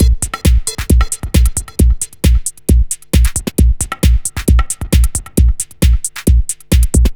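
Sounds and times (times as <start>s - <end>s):
dance drum loop: 0.0s - 7.1s.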